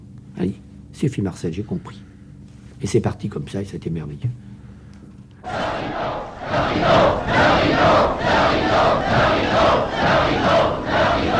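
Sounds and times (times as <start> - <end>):
speech: 0.4 - 2.1, 2.8 - 4.4
theatre audience shouting in protest: 5.4 - 11.3.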